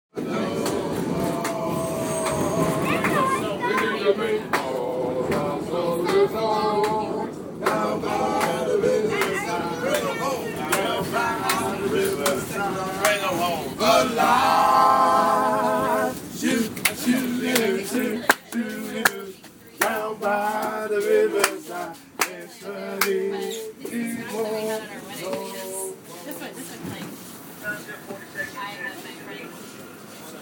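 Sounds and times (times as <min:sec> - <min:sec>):
NYC subway music: 0:00.1 - 0:30.3.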